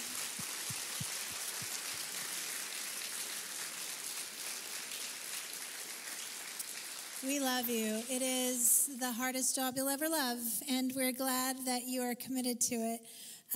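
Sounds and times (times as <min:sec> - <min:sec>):
audience applauding: 0:00.0 - 0:08.2
speech: 0:07.2 - 0:13.5.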